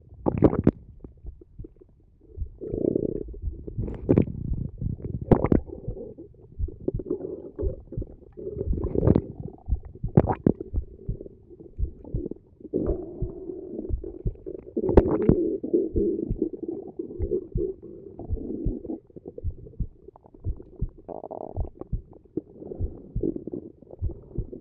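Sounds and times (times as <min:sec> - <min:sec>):
stomach sounds: 0:00.0 - 0:24.5.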